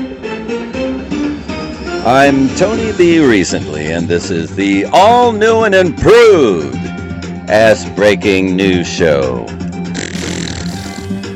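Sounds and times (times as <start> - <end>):
speech: 2.0 - 6.8, 7.5 - 9.6
fart sound effect: 9.9 - 11.3.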